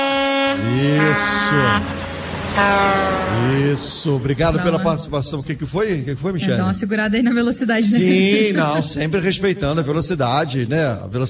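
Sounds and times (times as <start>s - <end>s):
truck air horn blaring: 0.0s - 5.0s
road rumble: 0.4s - 10.4s
laughter: 0.6s - 1.9s, 3.4s - 10.9s
speech: 0.6s - 2.0s, 2.6s - 11.2s.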